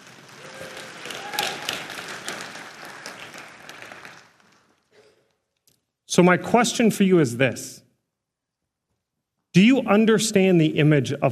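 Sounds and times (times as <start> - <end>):
audience clapping: 0.0 - 5.0
brief cheer: 0.4 - 1.9
speech: 6.2 - 7.8, 9.6 - 11.3.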